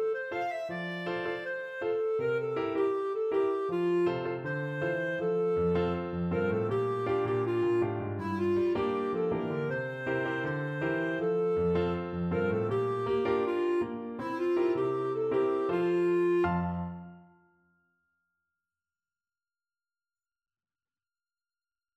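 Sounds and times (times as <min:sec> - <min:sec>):
clarinet melody: 0:00.0 - 0:17.5.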